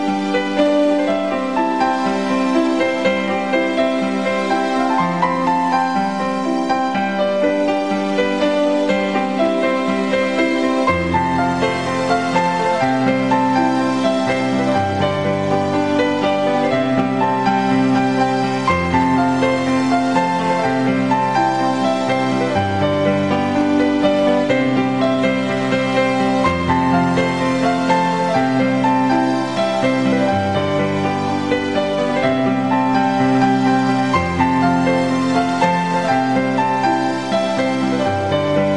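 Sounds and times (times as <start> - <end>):
piano piece: 0.0 - 38.7.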